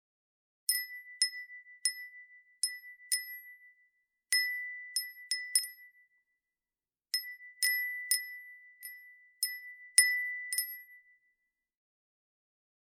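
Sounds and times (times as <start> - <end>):
small bell tinkling in the wind: 0.7 - 6.4, 7.1 - 11.5.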